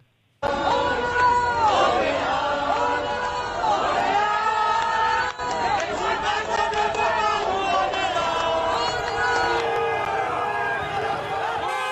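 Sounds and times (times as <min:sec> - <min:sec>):
large protest crowd shouting and chanting in Paris: 0:00.4 - 0:11.9.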